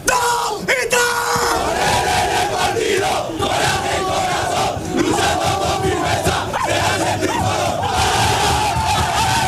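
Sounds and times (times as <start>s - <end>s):
football team men roaring a rallying shout in locker room: 0.1s - 9.4s.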